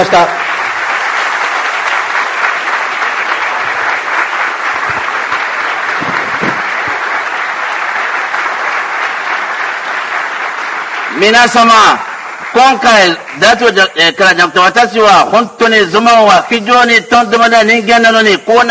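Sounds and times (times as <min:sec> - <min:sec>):
audience applause: 0:00.0 - 0:14.0
speech: 0:00.1 - 0:00.4, 0:11.2 - 0:18.6.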